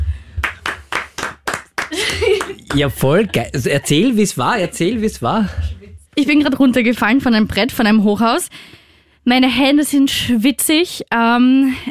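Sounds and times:
hands clapping: 0.4 - 3.6
laughter: 1.8 - 6.0
speech: 1.9 - 11.8.

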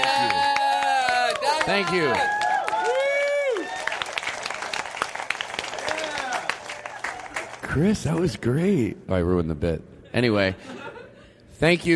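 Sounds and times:
crowd whooping and cheering: 0.0 - 7.4
crowd clapping: 0.0 - 8.5
speech: 1.7 - 2.4, 7.8 - 10.8, 11.6 - 11.9.

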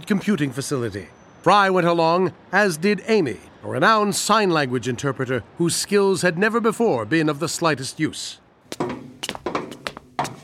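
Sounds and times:
speech: 0.1 - 8.9
knocking on a door: 8.8 - 10.4.

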